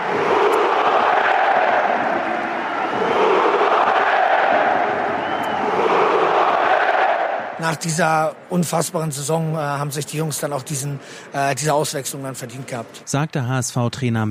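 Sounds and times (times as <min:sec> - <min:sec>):
stadium crowd applauding: 0:00.0 - 0:07.2
large stadium crowd roaring and cheering: 0:00.0 - 0:12.9
speech: 0:07.6 - 0:14.2.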